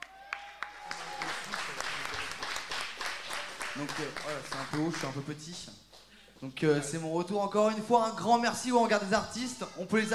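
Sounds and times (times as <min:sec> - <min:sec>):
audience cheering: 0:00.0 - 0:04.0
audience applauding: 0:00.0 - 0:05.3
speech: 0:03.8 - 0:10.1.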